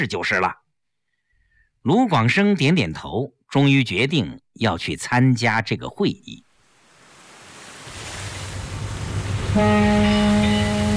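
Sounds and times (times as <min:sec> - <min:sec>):
speech: 0:00.0 - 0:00.6, 0:01.8 - 0:06.5, 0:09.6 - 0:10.4
ocean surf at harbor: 0:06.5 - 0:10.9
passenger ship's deep horn: 0:09.4 - 0:10.9.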